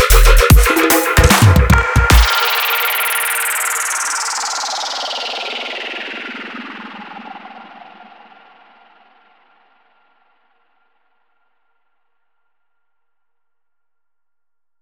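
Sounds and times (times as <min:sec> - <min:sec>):
drums: 0:00.0 - 0:02.8.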